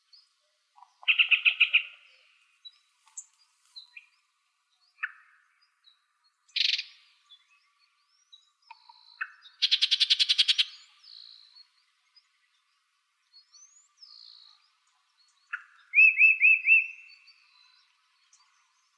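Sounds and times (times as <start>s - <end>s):
Yellow-breasted Chat song in Arizona: 0.0s - 18.9s.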